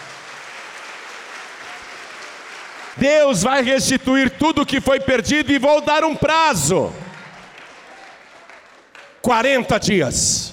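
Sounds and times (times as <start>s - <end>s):
audience applauding: 0.0s - 3.1s, 6.7s - 9.3s
speech: 3.0s - 7.0s, 9.2s - 10.5s.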